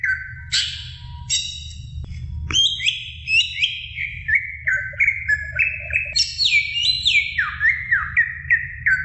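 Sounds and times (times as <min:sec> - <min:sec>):
Oriental magpie-robin song of rich whistles: 0:00.0 - 0:01.8, 0:02.5 - 0:09.0.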